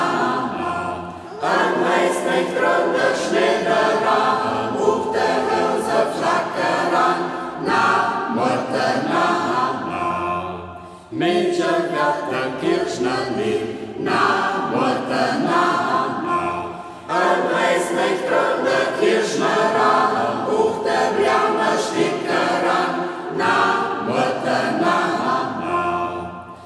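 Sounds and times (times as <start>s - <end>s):
singing circle singing a folk song in local dialect: 0.0s - 26.6s.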